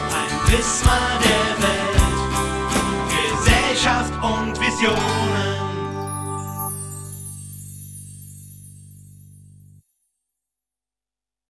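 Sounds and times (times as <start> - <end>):
singing: 0.0 - 2.4, 3.0 - 6.0.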